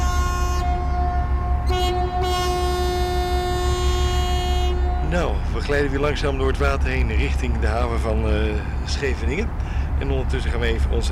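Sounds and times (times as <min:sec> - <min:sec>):
ship's horn departure signal: 0:00.0 - 0:06.2
ship engine drone: 0:00.0 - 0:11.1
speech: 0:05.1 - 0:11.1.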